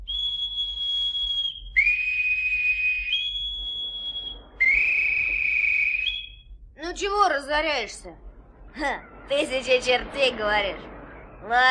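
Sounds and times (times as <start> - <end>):
shrill whistle blasts: 0.0 - 6.6
speech: 7.0 - 8.2, 8.8 - 11.6.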